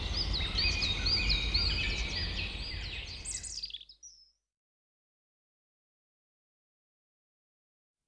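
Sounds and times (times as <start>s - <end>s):
birds in a forest sound effect: 0.0s - 4.4s.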